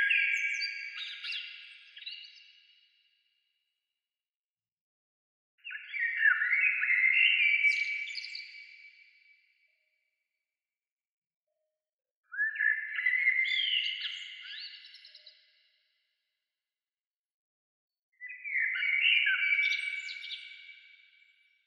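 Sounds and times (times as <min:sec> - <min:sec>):
bird song: 0:00.0 - 0:03.7, 0:05.6 - 0:10.3, 0:11.6 - 0:16.3, 0:18.1 - 0:21.6.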